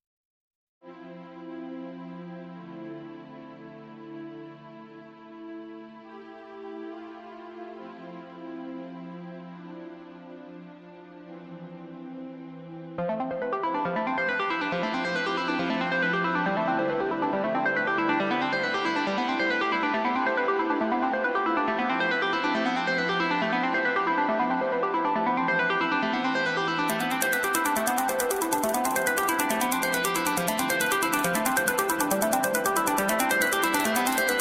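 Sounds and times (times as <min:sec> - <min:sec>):
trance music: 0:13.0 - 0:34.3.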